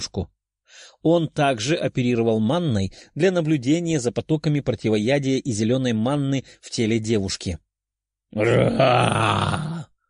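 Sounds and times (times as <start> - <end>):
speech: 0.0 - 7.6, 8.3 - 9.9
loud dragon roar: 8.4 - 9.9.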